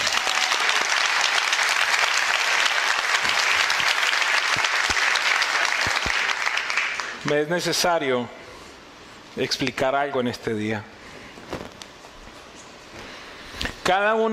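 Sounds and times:
golf-style applause: 0.0 - 7.4
speech: 7.3 - 8.4, 9.4 - 10.9, 13.9 - 14.3.

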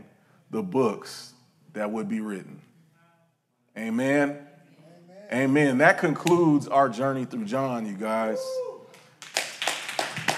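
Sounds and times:
speech: 0.5 - 2.7, 3.8 - 4.5, 5.3 - 8.7
audience clapping: 8.9 - 10.3.

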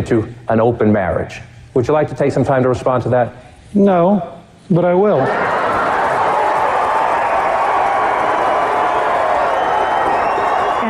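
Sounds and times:
speech: 0.0 - 5.6
crowd cheering and applauding: 5.2 - 10.8.

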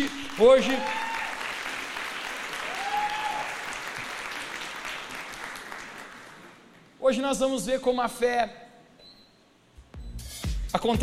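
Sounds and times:
speech: 0.0 - 1.0, 7.1 - 8.6, 10.8 - 11.0
audience applause: 0.0 - 6.7.

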